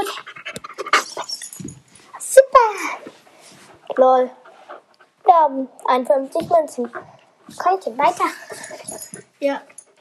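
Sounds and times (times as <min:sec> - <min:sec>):
dog panting: 0:00.0 - 0:02.2, 0:03.5 - 0:05.6, 0:06.3 - 0:09.9
speech: 0:04.0 - 0:04.4, 0:05.4 - 0:08.5, 0:09.4 - 0:09.7.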